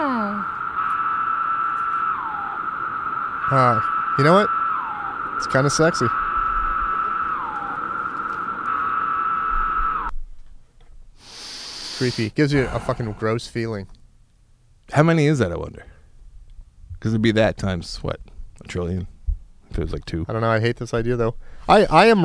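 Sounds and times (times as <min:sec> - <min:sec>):
chorus of screaming cicadas: 0:00.0 - 0:10.1, 0:11.2 - 0:13.2
speech: 0:03.5 - 0:04.6, 0:05.4 - 0:06.2, 0:12.0 - 0:14.0, 0:14.9 - 0:15.9, 0:17.0 - 0:19.1, 0:19.7 - 0:22.2.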